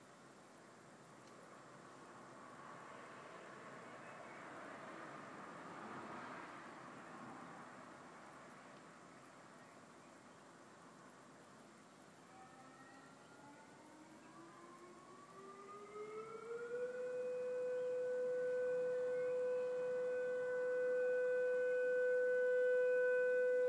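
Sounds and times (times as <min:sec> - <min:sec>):
siren test: 0:12.2 - 0:23.6.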